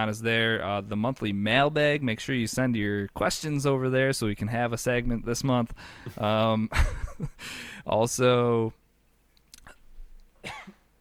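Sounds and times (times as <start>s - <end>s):
speech: 0.0s - 8.8s
person coughing from choking: 10.4s - 10.9s.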